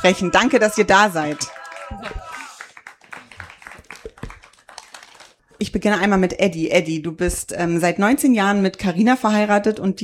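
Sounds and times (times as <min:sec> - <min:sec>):
speech: 0:00.0 - 0:02.3, 0:05.6 - 0:10.0
audience applause: 0:00.0 - 0:05.6.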